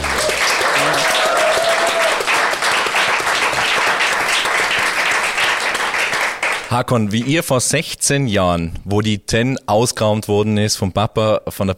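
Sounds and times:
audience applause: 0.0 - 6.7
speech: 6.7 - 11.7.

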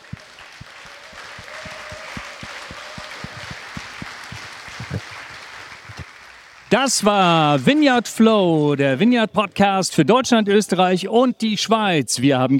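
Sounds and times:
audience applause: 0.0 - 8.2
speech: 6.7 - 12.5.

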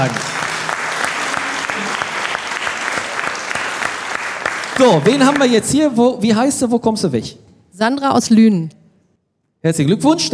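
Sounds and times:
speech: 0.0 - 0.3, 4.8 - 8.8, 9.6 - 10.3
audience applause: 0.0 - 6.0.

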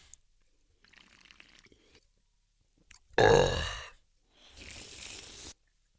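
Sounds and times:
person sipping beer: 0.8 - 2.1, 3.4 - 5.6.

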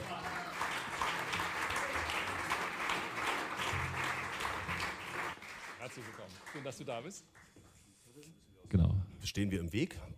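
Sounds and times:
audience applause: 0.0 - 7.2
speech: 6.0 - 7.4, 8.2 - 10.1.

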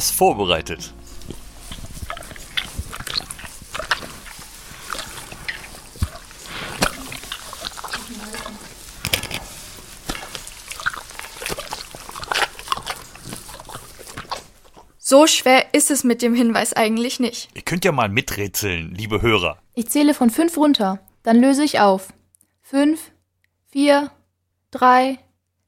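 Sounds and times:
speech: 0.0 - 1.2, 15.1 - 23.1, 23.7 - 25.2
bear licking honey: 1.0 - 15.0.

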